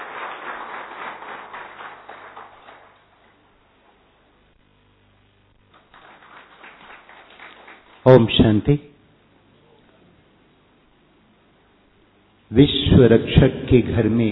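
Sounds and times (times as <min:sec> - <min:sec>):
crowd applause: 0:00.0 - 0:04.0, 0:05.7 - 0:08.2
speech: 0:08.1 - 0:08.9, 0:12.6 - 0:14.3.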